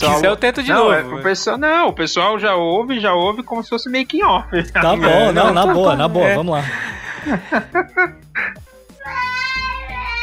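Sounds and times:
speech: 0.0 - 9.2
laughter: 4.7 - 8.6
child crying: 8.4 - 10.2.

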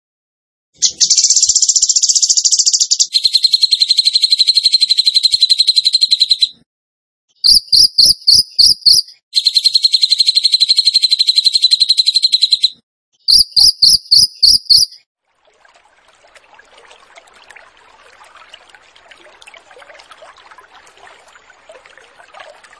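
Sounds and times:
bird trilling: 0.8 - 6.5, 7.4 - 15.0.

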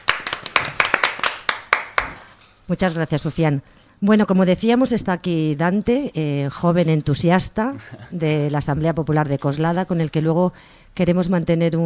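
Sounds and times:
small group clapping: 0.0 - 2.4
speech: 2.7 - 11.8.

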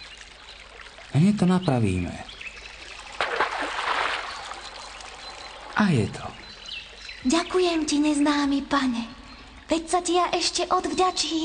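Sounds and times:
speech: 1.1 - 2.3, 5.8 - 6.4, 7.2 - 11.4
water splash as a fish is put back into the water: 2.8 - 6.0
hissing wash of moving water: 2.8 - 6.8
water slap: 3.0 - 5.2.

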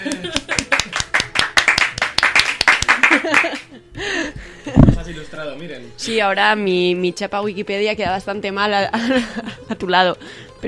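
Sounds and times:
laughter: 0.0 - 1.2, 2.8 - 5.4, 9.0 - 9.9
applause: 0.0 - 3.7
speech: 5.4 - 10.6.

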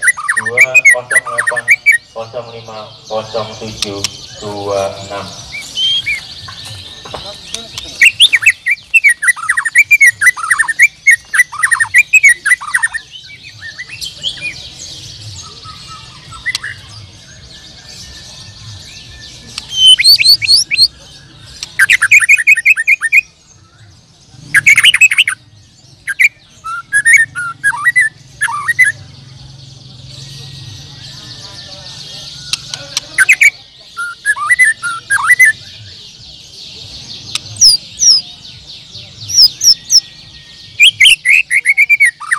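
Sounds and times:
low murmuring voices: 0.0 - 22.6, 23.3 - 42.3
white-rumped shama singing: 0.0 - 42.3
speech: 0.4 - 5.4, 20.3 - 21.2.

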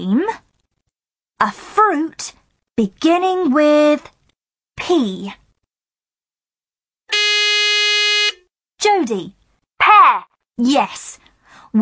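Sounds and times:
speech: 0.0 - 0.4, 1.4 - 4.2, 4.8 - 5.4, 8.8 - 11.8
quiz buzzer pressed during a quiz game: 7.1 - 8.4.

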